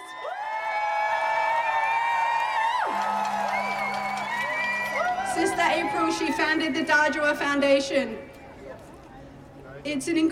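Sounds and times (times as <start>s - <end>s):
crowd cheering: 0.0s - 7.4s
speech: 5.6s - 8.3s, 9.8s - 10.3s.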